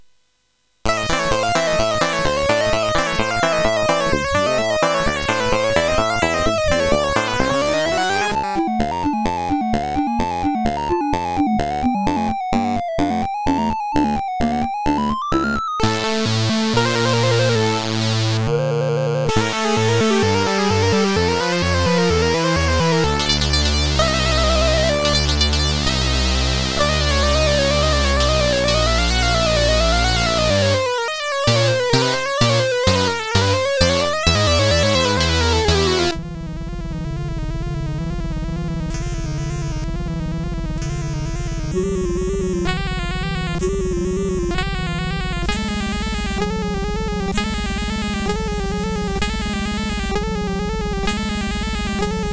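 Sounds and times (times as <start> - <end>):
SID CSG8580R5 chip buzz: 0.9 - 52.3.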